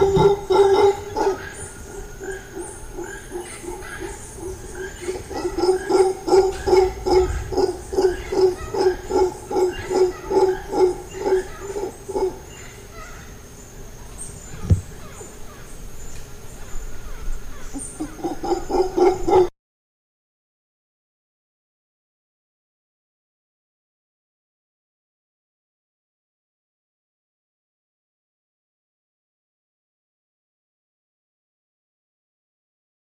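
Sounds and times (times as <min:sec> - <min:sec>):
howler monkey howling: 0:00.0 - 0:13.3, 0:17.0 - 0:19.5.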